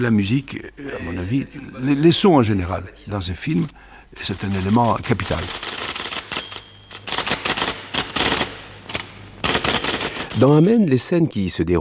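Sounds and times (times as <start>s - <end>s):
speech: 0.0s - 5.7s, 10.4s - 11.7s
typewriter typing in a courtroom film scene: 4.3s - 10.7s.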